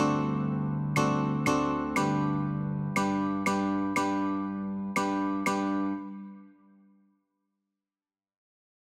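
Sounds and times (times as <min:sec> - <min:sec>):
guitar chords: 0:00.0 - 0:06.6.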